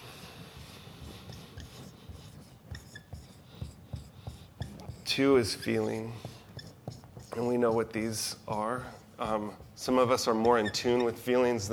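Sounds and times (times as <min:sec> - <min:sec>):
pen scratching across paper: 0:00.0 - 0:11.4
speech: 0:05.1 - 0:06.3, 0:07.4 - 0:11.7.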